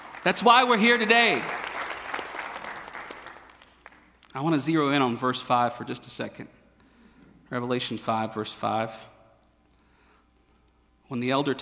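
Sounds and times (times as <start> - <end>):
audience clapping: 0.0 - 4.4
speech: 0.2 - 1.6, 4.4 - 6.6, 7.5 - 9.1, 11.1 - 11.5.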